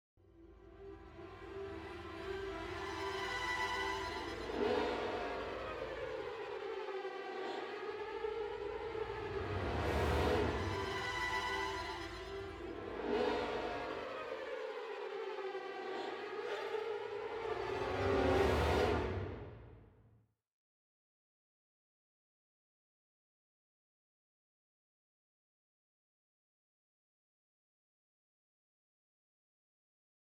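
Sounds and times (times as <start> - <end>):
tense music: 0.3 - 19.9.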